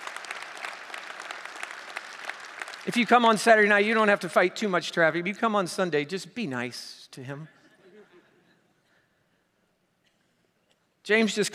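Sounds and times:
audience applause: 0.0s - 3.7s
speech: 2.8s - 7.6s, 11.1s - 11.5s.

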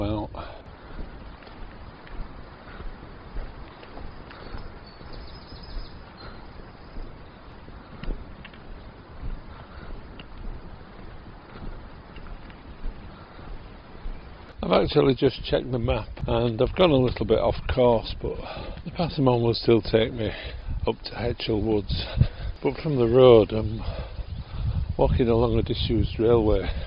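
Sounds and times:
strong wind on a hill walk near Bardsey on the Leeds Country Way: 0.0s - 26.8s
speech: 14.7s - 24.0s, 25.0s - 26.8s.

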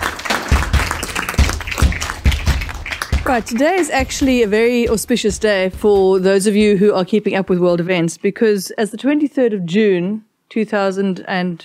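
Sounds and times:
audience applause: 0.0s - 4.5s
speech: 3.3s - 11.6s.

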